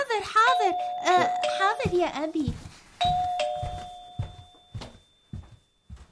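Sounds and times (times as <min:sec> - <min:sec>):
speech: 0:00.2 - 0:03.4
doorbell ringing: 0:00.4 - 0:02.1, 0:03.0 - 0:05.6.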